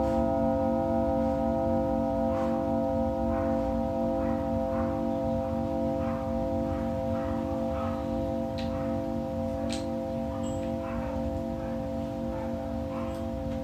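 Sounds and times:
Tibetan singing bowl ringing: 0.0s - 13.6s.

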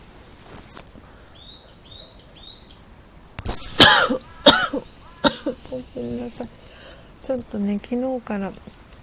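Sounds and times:
bird chirping: 1.1s - 3.0s, 3.6s - 6.9s
person with weak bronchial tubes coughing: 3.8s - 5.7s
speech: 6.0s - 8.8s.

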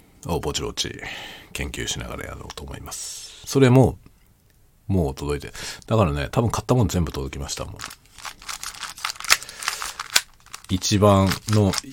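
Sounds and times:
speech: 0.2s - 4.1s, 4.9s - 8.4s, 10.7s - 11.9s
plastic puzzle cube being twisted: 7.8s - 11.9s.

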